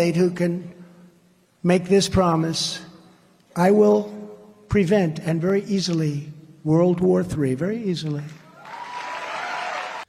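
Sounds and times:
speech: 0.0 - 0.8, 1.6 - 2.9, 3.6 - 8.4
crowd applause: 8.6 - 10.0.

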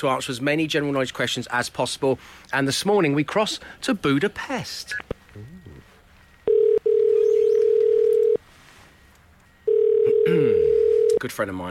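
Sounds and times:
speech: 0.0 - 5.6, 10.3 - 11.6
telephone ringing tone while calling: 6.4 - 8.4, 9.6 - 11.2.

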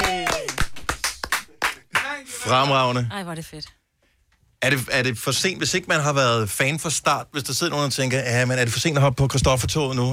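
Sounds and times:
people clapping: 0.0 - 2.4
speech: 2.5 - 3.8, 4.6 - 10.1.

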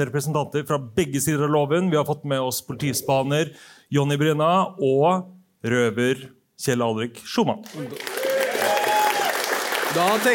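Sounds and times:
speech: 0.0 - 8.2, 10.0 - 10.3
audience applause: 7.7 - 10.3.

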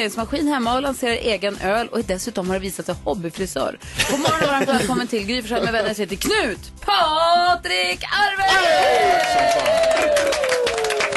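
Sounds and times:
speech: 0.0 - 10.9
laughter: 4.0 - 6.0
audience applause: 8.8 - 11.1.

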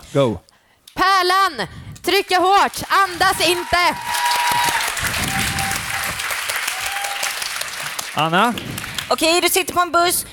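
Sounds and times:
speech: 0.1 - 4.7, 8.2 - 10.3
audience applause: 2.7 - 9.2.

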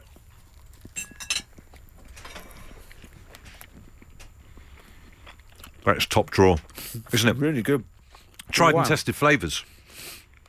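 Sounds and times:
knife and fork clinking on a plate: 0.9 - 1.5
speech: 5.8 - 7.9, 8.6 - 9.7.

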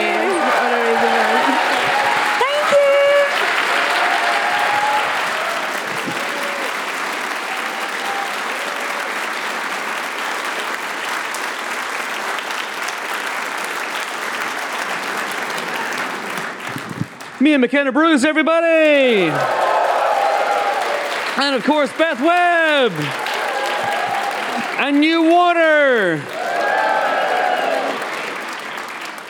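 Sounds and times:
cheers: 0.0 - 10.6, 18.8 - 29.2
loud sustained applause from a large audience: 0.0 - 17.5, 18.8 - 29.2
speech: 17.5 - 19.6, 21.4 - 23.2, 24.8 - 26.3.

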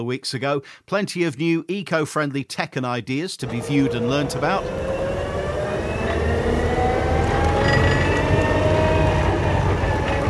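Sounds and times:
speech: 0.0 - 5.0
JCB electric tractor running: 3.4 - 10.2.

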